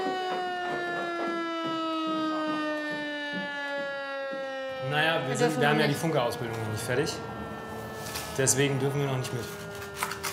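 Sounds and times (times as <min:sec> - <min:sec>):
faint knocks and rustles: 0:00.0 - 0:04.6
noon test of civil defense siren wailing: 0:00.0 - 0:10.3
speech: 0:04.9 - 0:07.4, 0:08.4 - 0:09.6.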